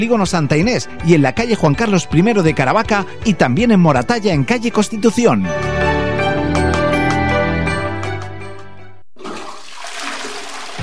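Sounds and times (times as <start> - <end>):
speech: 0.0 - 5.9
music: 0.0 - 9.0, 10.7 - 10.8
toilet flushing: 9.2 - 10.8.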